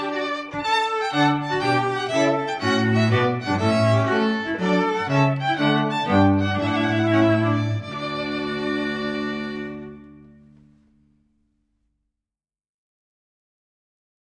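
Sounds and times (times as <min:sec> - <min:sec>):
trumpet piece: 0:00.0 - 0:10.8.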